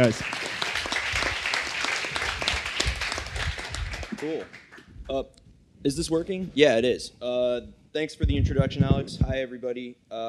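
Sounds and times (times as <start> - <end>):
speech: 0.0 - 0.4, 4.2 - 10.2
audience applause: 0.0 - 4.9.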